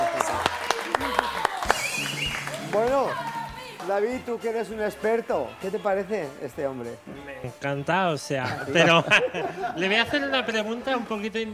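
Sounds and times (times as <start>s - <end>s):
crowd clapping rhythmically for dancers: 0.0s - 6.1s
speech: 3.9s - 11.5s
laughter: 8.4s - 10.6s.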